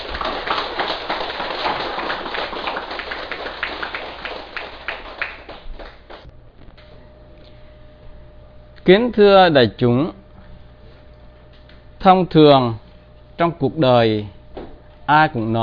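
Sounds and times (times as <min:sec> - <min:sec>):
audience applause: 0:00.0 - 0:06.3
speech: 0:08.9 - 0:10.2, 0:12.0 - 0:12.8, 0:13.4 - 0:14.4, 0:15.1 - 0:15.6.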